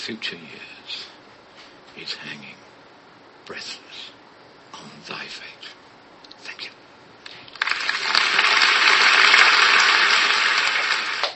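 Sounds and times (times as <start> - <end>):
speech: 0.0 - 1.1, 2.0 - 2.6, 3.5 - 5.8
golf clap: 7.5 - 11.3.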